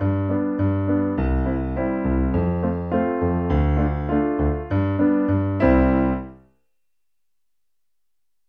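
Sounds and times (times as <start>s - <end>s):
piano: 0.0s - 6.5s.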